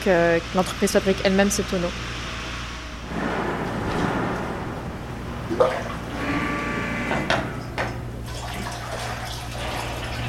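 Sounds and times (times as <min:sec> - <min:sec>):
speech: 0:00.0 - 0:02.3
constant low mechanical hum: 0:00.0 - 0:10.2
freshly pressed high-strength sake flowing during brewing: 0:05.5 - 0:06.2, 0:08.2 - 0:10.2.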